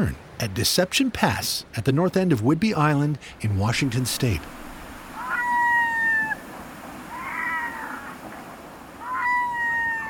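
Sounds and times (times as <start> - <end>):
speech: 0.0 - 4.6
red-throated loons calling in flight: 3.4 - 10.0.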